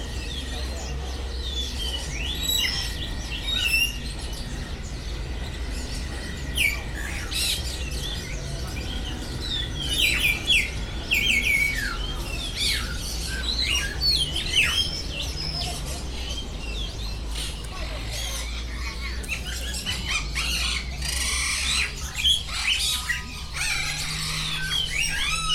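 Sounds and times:
bird warbling trilled song in a bird garden: 0:00.0 - 0:25.5.

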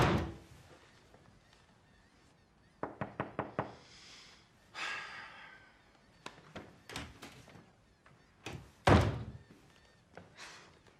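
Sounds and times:
door shutting with a heavy thud: 0:00.0 - 0:00.5, 0:08.5 - 0:09.4
knocking on a door: 0:02.8 - 0:03.8.

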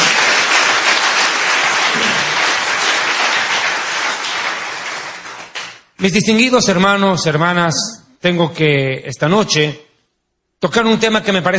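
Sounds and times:
church congregation applauding: 0:00.0 - 0:06.0
speech: 0:06.0 - 0:09.8, 0:10.6 - 0:11.5.

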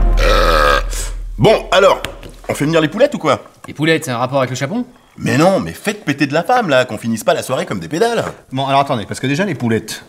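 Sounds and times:
person retching or vomiting: 0:00.1 - 0:01.2
speech: 0:01.4 - 0:10.0.

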